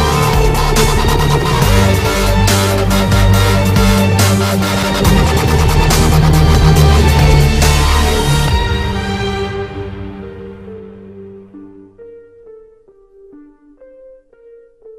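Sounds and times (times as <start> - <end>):
dubstep remix: 0.0 - 9.8.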